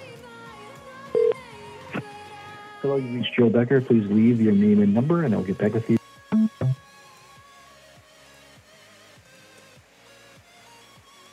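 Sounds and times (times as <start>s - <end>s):
speech: 2.8s - 6.0s
telephone beep from a man's phone: 6.4s - 6.8s.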